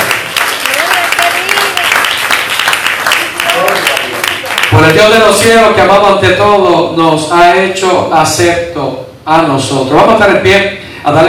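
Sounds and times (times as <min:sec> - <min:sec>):
large crowd clapping: 0:00.0 - 0:05.2
speech: 0:04.8 - 0:11.2.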